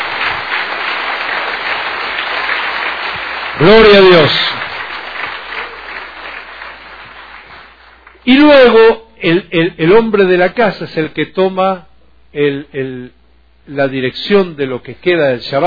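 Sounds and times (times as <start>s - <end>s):
audience applauding: 0.0s - 8.3s
speech: 3.6s - 4.6s, 8.3s - 15.6s.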